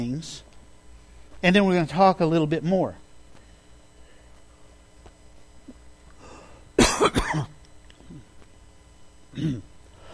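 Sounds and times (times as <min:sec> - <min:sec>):
speech: 0:00.0 - 0:00.5, 0:01.4 - 0:03.0, 0:07.0 - 0:07.6, 0:09.4 - 0:09.7
person coughing after something went down the wrong pipe: 0:06.8 - 0:08.3, 0:09.3 - 0:09.7
faint throat sound: 0:09.3 - 0:09.7.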